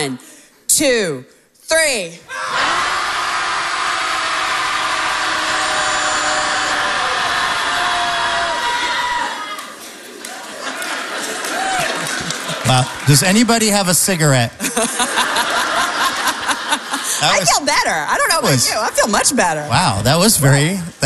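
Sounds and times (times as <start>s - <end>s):
speech: 0.0s - 2.6s, 12.7s - 15.5s, 17.2s - 21.0s
group of people shouting together: 2.3s - 9.8s
laughter: 9.9s - 13.5s, 14.5s - 19.0s.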